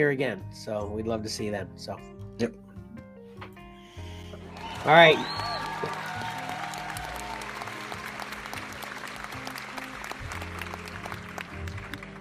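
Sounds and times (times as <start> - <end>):
speech: 0.0 - 2.6, 4.8 - 5.6
studio audience applause: 4.4 - 12.1.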